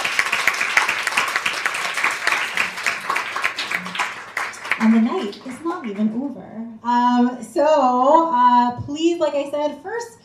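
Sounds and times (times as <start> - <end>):
audience applause: 0.0 - 6.2
speech: 4.8 - 10.2.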